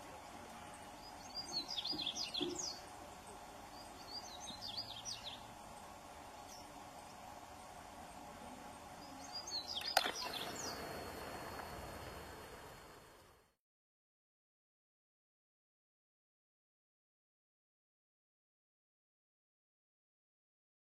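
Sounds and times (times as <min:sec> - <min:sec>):
black-throated mango hummingbird singing: 0:00.0 - 0:12.9.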